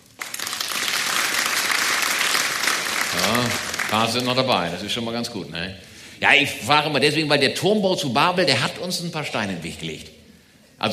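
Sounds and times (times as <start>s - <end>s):
audience clapping: 0.0s - 4.7s
speech: 3.2s - 10.2s, 10.8s - 10.9s.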